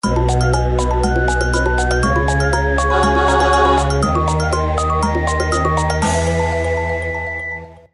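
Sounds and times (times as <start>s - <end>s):
level jingle: 0.0s - 7.8s.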